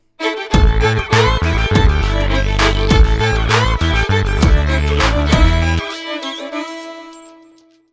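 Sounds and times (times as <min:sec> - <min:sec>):
music block: 0:00.0 - 0:07.9.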